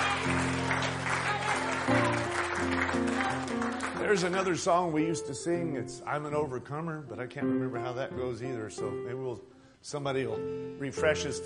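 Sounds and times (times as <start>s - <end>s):
hand clapping by audience: 0.0s - 4.8s
speech: 4.1s - 11.4s.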